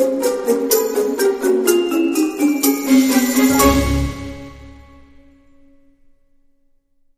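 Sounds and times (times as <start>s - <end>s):
dramedy music sting: 0.2s - 5.2s.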